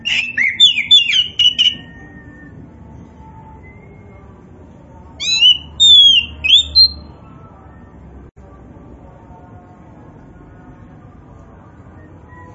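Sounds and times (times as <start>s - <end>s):
Oriental magpie-robin singing whistles: 0.0s - 2.6s, 5.2s - 7.1s.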